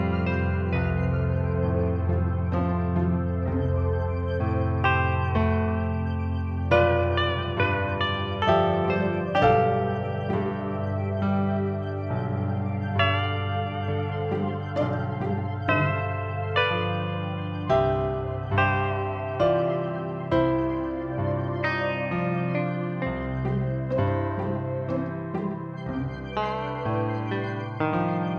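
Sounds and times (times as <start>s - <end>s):
chill piano synth soundscape: 0.0s - 28.3s.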